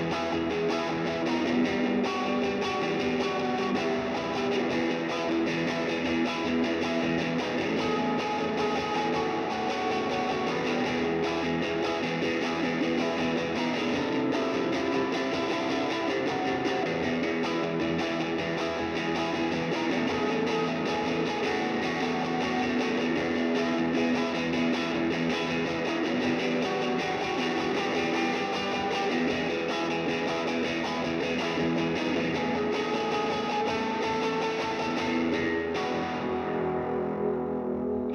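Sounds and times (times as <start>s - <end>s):
guitar recorded in mono with an SM57: 0.0s - 38.1s.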